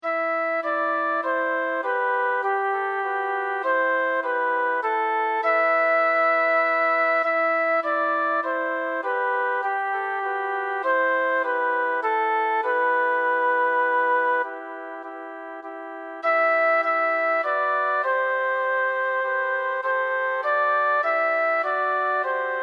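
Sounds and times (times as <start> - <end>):
flute: 0.0 - 22.6.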